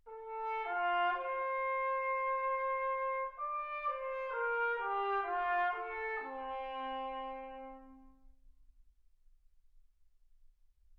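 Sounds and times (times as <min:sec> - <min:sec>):
trumpet: 0:00.0 - 0:08.4.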